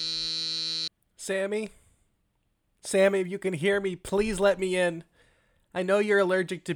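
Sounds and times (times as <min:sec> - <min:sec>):
apartment door buzzer: 0:00.0 - 0:00.9
speech: 0:01.3 - 0:01.8, 0:02.8 - 0:05.1, 0:05.7 - 0:06.7.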